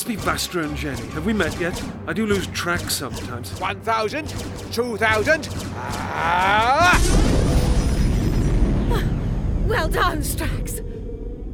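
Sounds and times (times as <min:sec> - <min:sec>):
speech: 0:00.0 - 0:07.3, 0:09.7 - 0:10.8
immobilization grenade exploding in an audio drama: 0:06.8 - 0:10.0.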